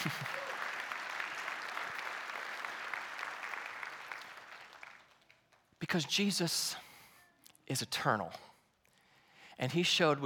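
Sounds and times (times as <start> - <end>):
audience applause: 0.0 - 5.4
speech: 5.9 - 6.8, 7.7 - 8.5, 9.6 - 10.2.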